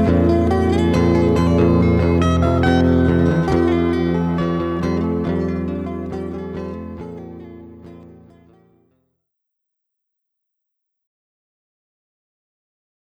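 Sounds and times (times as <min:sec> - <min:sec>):
jazz instrumental: 0:00.0 - 0:07.9.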